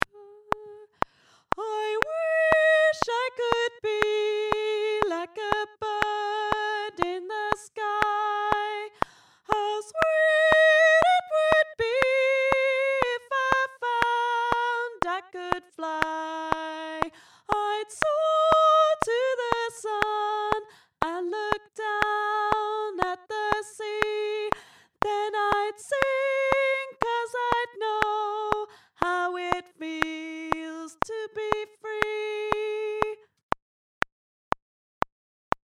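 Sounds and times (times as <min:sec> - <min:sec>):
soprano singing: 0:00.0 - 0:01.0, 0:01.6 - 0:33.2.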